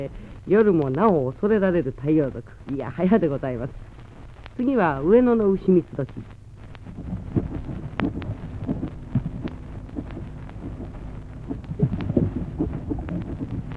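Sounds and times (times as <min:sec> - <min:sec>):
speech: 0:00.0 - 0:03.9, 0:04.6 - 0:07.0
low steady rumble and hum: 0:00.0 - 0:13.7
soft pops and faint clicks of lotus flowers opening on a pond: 0:03.8 - 0:04.7, 0:05.4 - 0:13.7.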